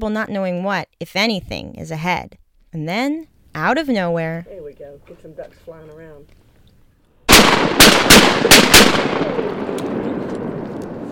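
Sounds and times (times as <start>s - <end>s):
speech: 0.0s - 6.4s, 7.8s - 9.9s
gunshots while duck hunting: 7.3s - 11.1s.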